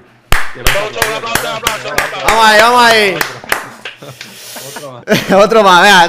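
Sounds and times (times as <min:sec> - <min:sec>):
hand clapping applause: 0:00.3 - 0:04.4
speech: 0:00.5 - 0:03.4, 0:04.0 - 0:06.0
laughter: 0:03.7 - 0:05.8.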